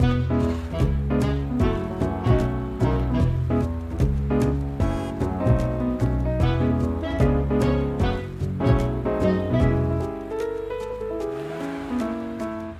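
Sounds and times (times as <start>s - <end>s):
background music: 0.0s - 12.7s.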